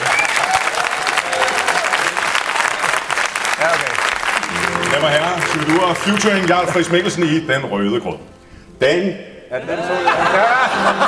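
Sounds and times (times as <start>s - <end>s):
applause: 0.0s - 7.3s
speech: 5.5s - 11.0s
laughter: 9.5s - 11.0s.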